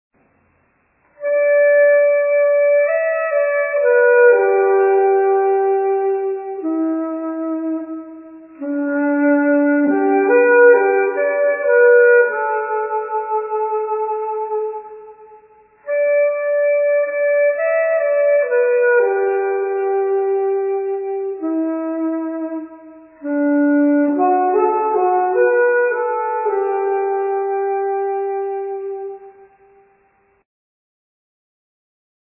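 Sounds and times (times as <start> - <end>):
saxophone: 1.1 - 30.0.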